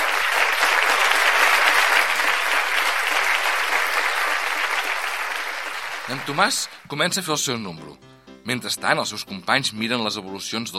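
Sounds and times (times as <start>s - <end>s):
loud audience applause: 0.0s - 6.9s
speech: 6.2s - 10.7s.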